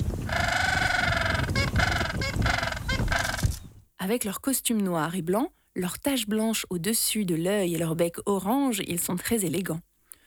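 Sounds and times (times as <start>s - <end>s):
gentoo penguin braying call: 0.3s - 3.5s
speech: 4.0s - 9.9s.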